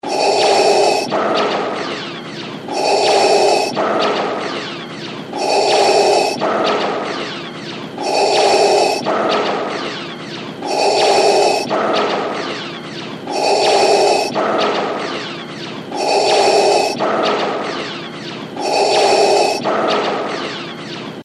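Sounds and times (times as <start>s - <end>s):
Darth Vader mechanical breathing ringtone: 0.0s - 20.3s.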